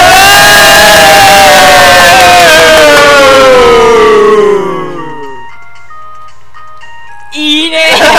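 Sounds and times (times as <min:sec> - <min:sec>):
crowd cheering and applause: 0:00.0 - 0:05.3.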